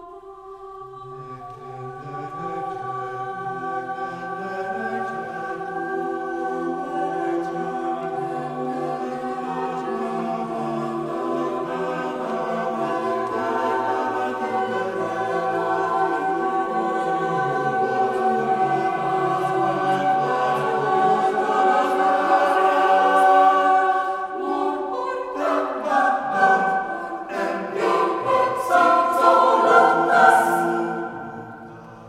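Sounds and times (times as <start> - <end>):
mixed choir: 0.0 - 32.0.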